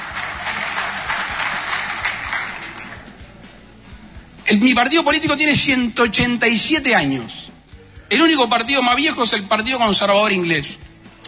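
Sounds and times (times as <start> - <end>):
crowd clapping: 0.0 - 3.2
speech: 4.5 - 7.5, 8.1 - 10.8.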